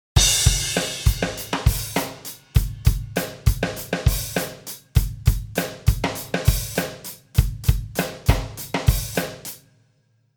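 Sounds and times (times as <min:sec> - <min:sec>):
drum: 0:00.2 - 0:09.6.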